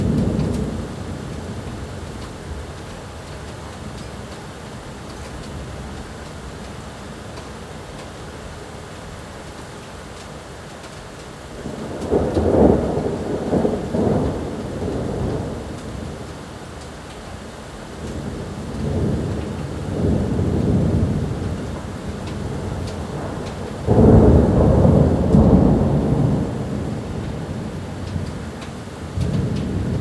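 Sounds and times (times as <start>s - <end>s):
thunder: 11.6s - 16.3s, 18.0s - 29.9s.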